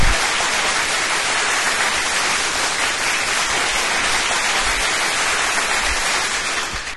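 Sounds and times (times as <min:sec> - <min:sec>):
applause: 0:00.0 - 0:06.9.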